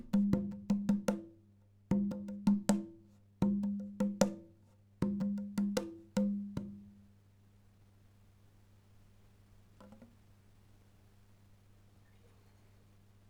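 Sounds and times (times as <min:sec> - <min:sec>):
conga drum: 0:00.0 - 0:07.0.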